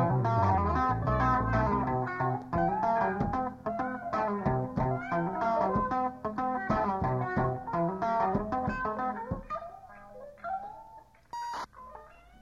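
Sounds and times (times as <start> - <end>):
improvised music: 0.0 - 9.8.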